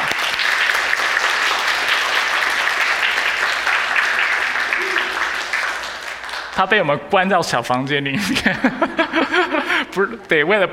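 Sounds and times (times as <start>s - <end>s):
warm applause from audience: 0.0s - 7.0s
laughter: 4.7s - 5.4s, 8.1s - 10.3s
speech: 6.6s - 10.7s.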